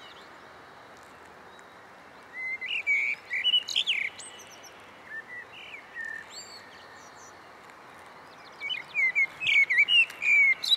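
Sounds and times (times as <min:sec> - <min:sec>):
Eurasian blackbird Turdus merula singing fluty warbled whistles: 0:02.3 - 0:07.4, 0:08.3 - 0:10.7.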